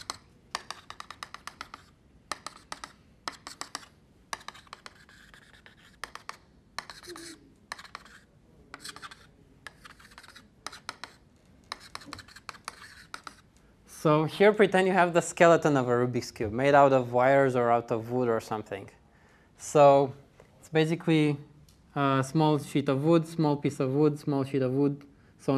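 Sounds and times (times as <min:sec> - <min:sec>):
scratchy strokes of drawing a wireframe cube: 0:00.0 - 0:13.5
speech: 0:14.0 - 0:19.0, 0:19.7 - 0:25.5.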